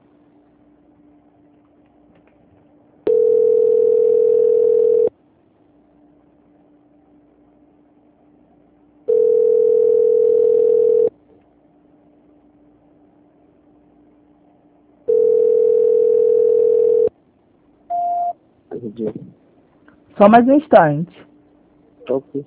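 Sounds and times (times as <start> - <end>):
telephone line tone while a call is transferred: 3.1 - 5.1, 9.1 - 11.1, 15.1 - 17.1, 17.9 - 18.3
short telephone beeps: 17.9 - 18.4
speech: 20.2 - 21.3, 22.1 - 22.4.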